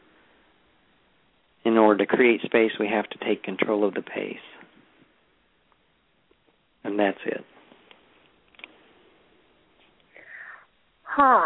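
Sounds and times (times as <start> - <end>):
speech: 1.9 - 4.5, 6.9 - 7.5, 11.2 - 11.4
deep breath inhale: 10.1 - 10.7.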